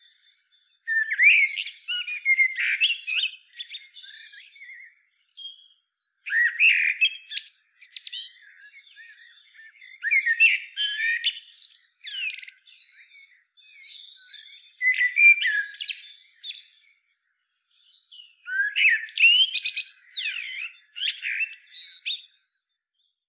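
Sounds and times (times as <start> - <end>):
common blackbird singing: 0.0 - 23.2.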